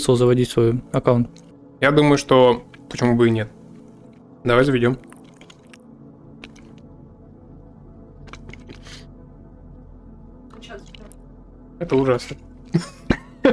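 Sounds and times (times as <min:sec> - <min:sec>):
speech: 0:00.0 - 0:03.6, 0:04.4 - 0:05.1, 0:11.8 - 0:13.5
chewing candy: 0:05.0 - 0:05.8, 0:06.4 - 0:06.8, 0:08.2 - 0:09.1.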